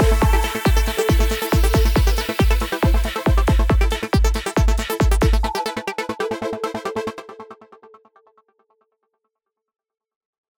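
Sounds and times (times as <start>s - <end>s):
trance music: 0.0s - 8.0s.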